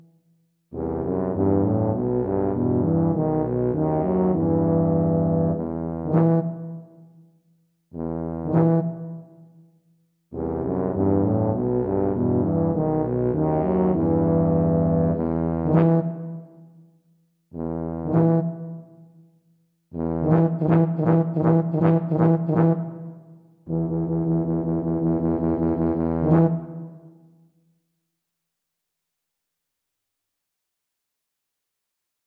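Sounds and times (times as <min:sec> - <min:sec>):
tuba trio playing: 0:00.8 - 0:06.6, 0:08.0 - 0:09.2, 0:10.4 - 0:16.3, 0:17.6 - 0:18.8, 0:20.0 - 0:23.0, 0:23.7 - 0:26.8.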